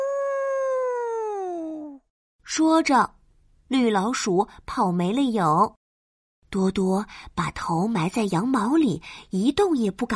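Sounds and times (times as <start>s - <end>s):
wolf howling: 0.0s - 2.0s
speech: 2.5s - 5.8s, 6.5s - 10.1s.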